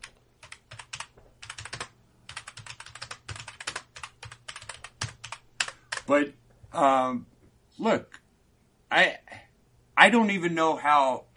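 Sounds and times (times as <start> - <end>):
typing a note on a computer keyboard: 0.0 - 6.1
speech: 6.1 - 8.2, 8.9 - 9.2, 10.0 - 11.3.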